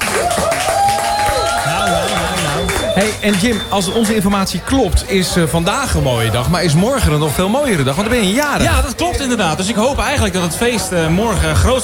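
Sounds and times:
applause for a studio guest in the Radio Veronica Café: 0:00.0 - 0:04.3
speech: 0:03.0 - 0:11.8.

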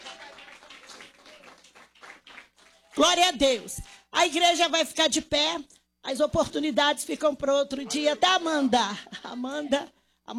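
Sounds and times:
church congregation clapping during worship: 0:00.0 - 0:03.9
speech: 0:03.0 - 0:10.3.

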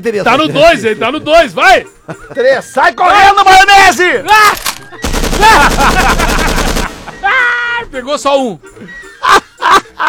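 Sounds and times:
speech: 0:00.0 - 0:04.8, 0:05.4 - 0:06.2, 0:07.9 - 0:09.4
laughter: 0:01.8 - 0:02.7, 0:04.7 - 0:07.7, 0:08.8 - 0:10.0
automatic gunfire: 0:04.6 - 0:07.1.

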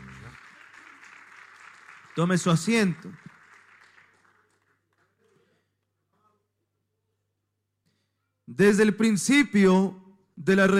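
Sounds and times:
audience clapping in praise: 0:00.0 - 0:05.5
speech: 0:02.2 - 0:03.3, 0:08.6 - 0:10.7.

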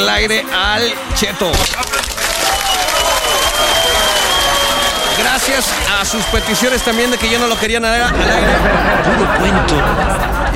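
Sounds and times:
speech: 0:00.0 - 0:02.3, 0:05.2 - 0:10.5
crowd applause: 0:01.4 - 0:10.5
laughter: 0:01.6 - 0:10.5
faint sustained whistle-like tone: 0:02.4 - 0:07.8.

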